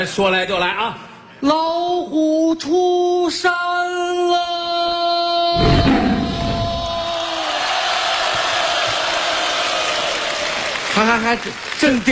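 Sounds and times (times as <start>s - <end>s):
speech: 0.0s - 6.0s, 11.0s - 12.1s
crowd cheering at a live comedy performance: 5.6s - 12.1s.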